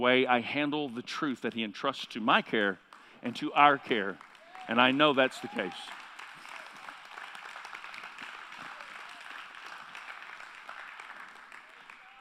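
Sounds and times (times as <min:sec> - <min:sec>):
speech: 0:00.0 - 0:06.0
audience hand clapping: 0:02.9 - 0:12.2.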